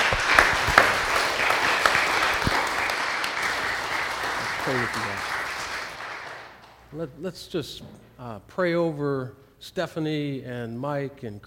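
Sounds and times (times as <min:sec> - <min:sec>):
audience applause: 0:00.0 - 0:06.8
speech: 0:04.7 - 0:05.4, 0:06.9 - 0:11.4.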